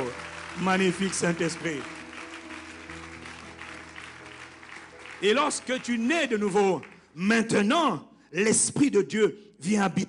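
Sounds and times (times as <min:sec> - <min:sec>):
church congregation applauding in praise: 0:00.0 - 0:07.6
speech: 0:00.6 - 0:02.0, 0:05.2 - 0:10.0.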